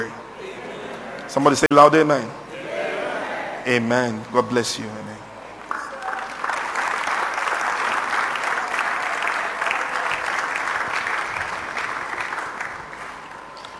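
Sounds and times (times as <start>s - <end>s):
speech: 1.3s - 2.4s, 3.6s - 5.2s
audience applause: 5.7s - 13.6s.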